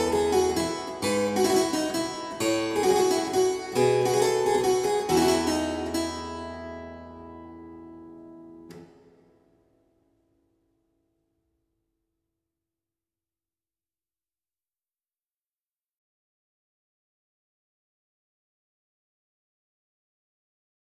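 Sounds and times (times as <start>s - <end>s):
minuet: 0.0s - 8.2s.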